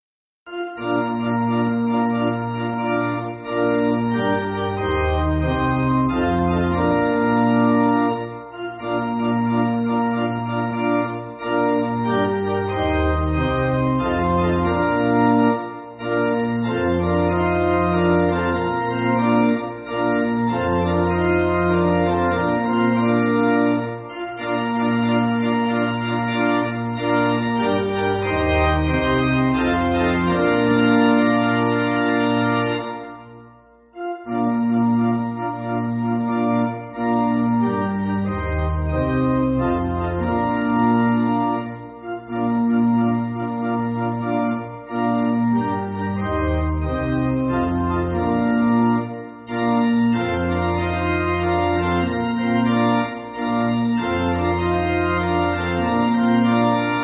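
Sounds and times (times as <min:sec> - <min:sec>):
pipe organ backing music: 0:00.5 - 0:57.0.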